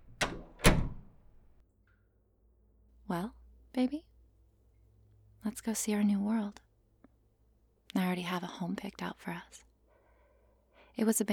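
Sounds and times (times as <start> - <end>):
doors being opened: 0.0 - 1.6
speech: 3.1 - 4.1, 5.4 - 6.7, 7.9 - 9.7, 11.0 - 11.3.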